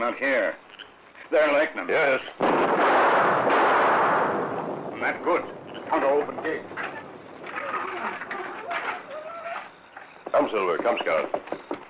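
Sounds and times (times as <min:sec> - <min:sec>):
speech: 0:00.0 - 0:00.7, 0:01.3 - 0:03.4, 0:05.0 - 0:06.8, 0:10.4 - 0:11.7
gunshot shooting off a lock: 0:02.4 - 0:07.0
roaring rumble: 0:02.6 - 0:09.4.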